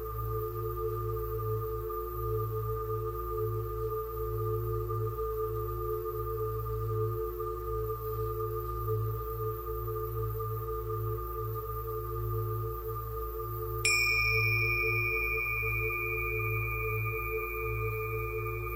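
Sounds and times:
low droning hum: 0:00.0 - 0:18.7
tuning fork tones: 0:13.8 - 0:18.7.

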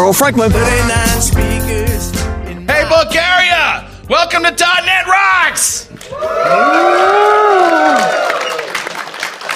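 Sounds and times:
speech: 0:00.1 - 0:02.1, 0:02.7 - 0:08.2
conference audience clapping: 0:06.0 - 0:09.5
conference audience whooping in Sofia, Bulgaria: 0:06.1 - 0:08.8.

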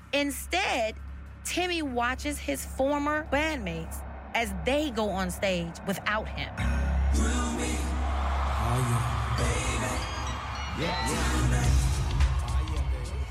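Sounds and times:
speech: 0:00.1 - 0:07.3, 0:10.8 - 0:11.4
stadium crowd cheering at the LA Coliseum: 0:02.6 - 0:13.2.

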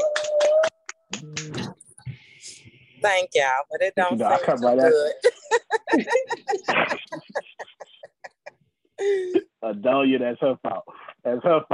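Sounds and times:
people clapping hands: 0:00.0 - 0:01.7
speech: 0:03.0 - 0:05.3, 0:05.9 - 0:06.9, 0:09.7 - 0:11.7
laughter: 0:05.2 - 0:08.6.

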